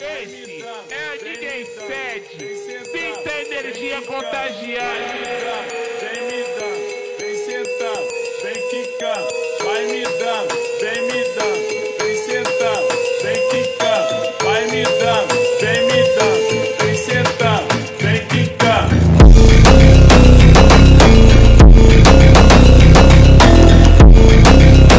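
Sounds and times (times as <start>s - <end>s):
slowed funk music: 11.4s - 24.9s.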